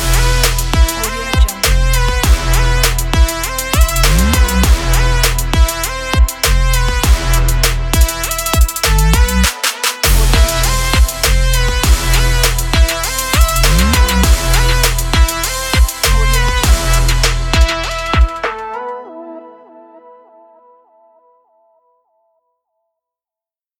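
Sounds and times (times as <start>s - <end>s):
trap beat: 0.0s - 19.0s.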